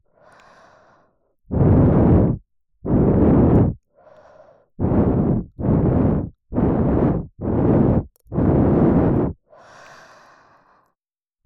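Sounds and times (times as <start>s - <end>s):
left ear cleaning: 1.5s - 3.8s, 4.8s - 9.4s.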